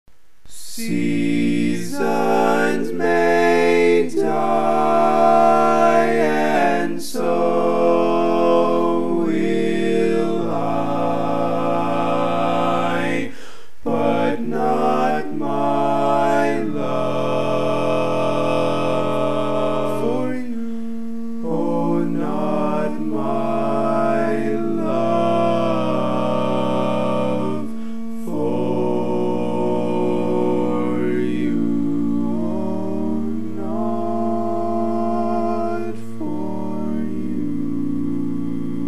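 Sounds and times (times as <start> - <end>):
barbershop tags all parts singing: 0.5 - 38.8.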